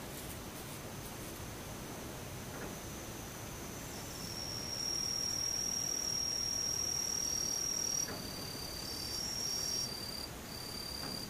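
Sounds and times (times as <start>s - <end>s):
daytime insects buzzing: 0.0s - 11.2s
soft hiss and low rumble: 0.0s - 11.2s.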